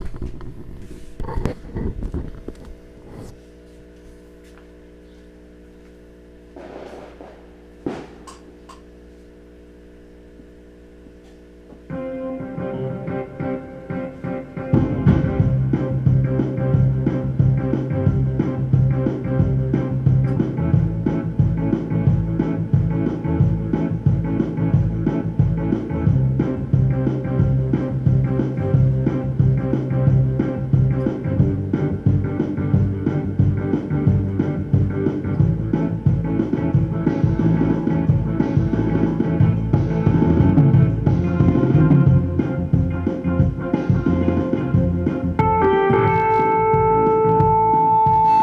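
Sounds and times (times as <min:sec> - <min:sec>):
rock music: 0:11.9 - 0:48.4.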